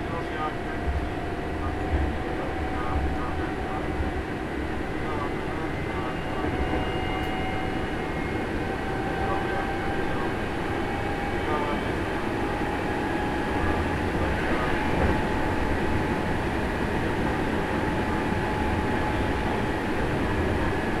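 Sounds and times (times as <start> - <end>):
Hankyu 7000 series electric train: 0.0 - 20.9.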